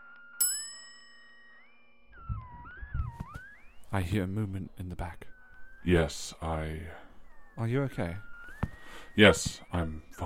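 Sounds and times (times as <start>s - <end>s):
desk bell being rung: 0.4s - 1.7s
speech: 3.9s - 7.0s, 7.6s - 8.3s, 9.2s - 10.2s.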